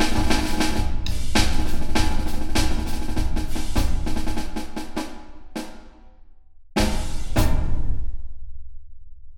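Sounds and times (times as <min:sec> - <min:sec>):
drum: 0:00.0 - 0:06.1, 0:06.8 - 0:08.1.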